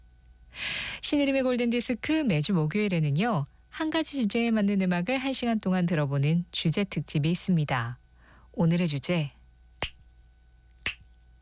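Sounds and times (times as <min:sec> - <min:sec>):
speech: 0:01.1 - 0:08.0, 0:08.6 - 0:09.4
finger snaps: 0:09.8 - 0:10.0, 0:10.8 - 0:11.2.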